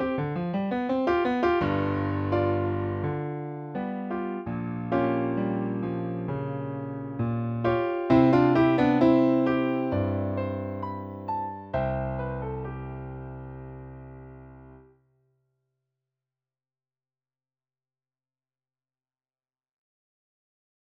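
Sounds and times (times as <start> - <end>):
piano: 0.0 - 14.9.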